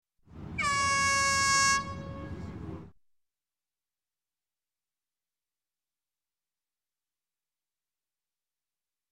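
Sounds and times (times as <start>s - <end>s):
air horn: 0.6s - 2.6s.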